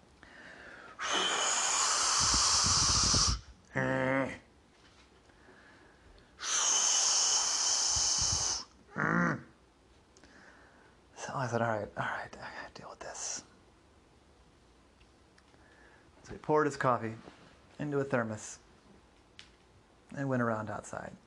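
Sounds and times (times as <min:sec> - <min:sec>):
voice imitating a wolf huffing and blowing: 0:01.0 - 0:04.5, 0:06.4 - 0:09.6
speech: 0:03.8 - 0:04.4, 0:11.5 - 0:11.7, 0:16.5 - 0:18.6, 0:20.2 - 0:21.2.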